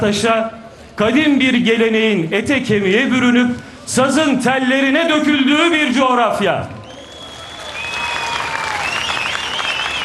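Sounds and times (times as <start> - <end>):
speech: 0.0 - 6.8
audience applause: 6.8 - 10.0
faint high sliding whistles: 6.8 - 10.0.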